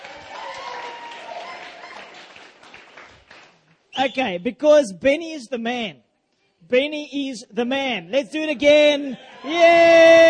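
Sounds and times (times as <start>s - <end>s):
audience clapping hands: 0.0s - 3.8s
speech: 4.0s - 6.0s, 6.7s - 10.2s.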